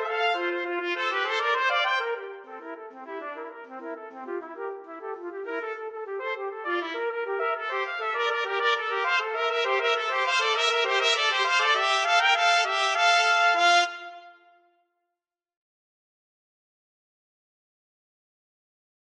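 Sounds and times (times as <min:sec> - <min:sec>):
trumpet duet: 0:00.0 - 0:14.6.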